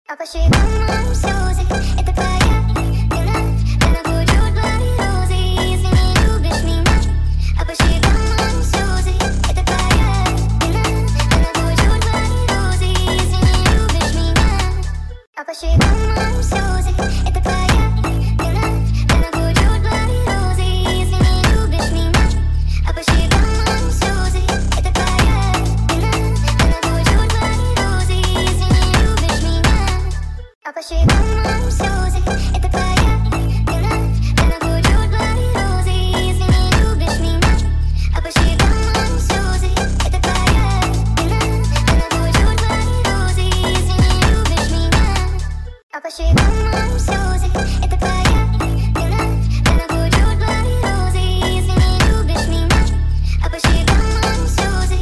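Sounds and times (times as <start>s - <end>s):
Brazilian phonk music: 0.5s - 15.2s, 15.8s - 30.4s, 31.0s - 45.7s, 46.3s - 55.0s.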